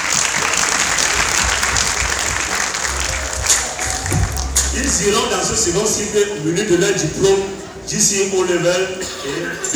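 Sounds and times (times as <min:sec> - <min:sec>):
audience applause: 0:00.0 - 0:05.7
speech: 0:04.8 - 0:09.7.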